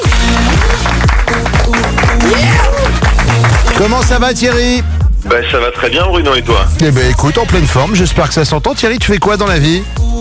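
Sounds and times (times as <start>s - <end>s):
studio audience applause: 0.0s - 4.8s
speech: 3.8s - 10.0s.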